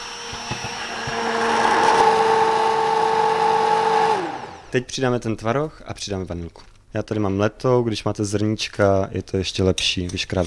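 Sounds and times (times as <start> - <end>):
immersion blender whirring through chocolate ganache: 0.0 - 4.8
speech: 4.7 - 10.4.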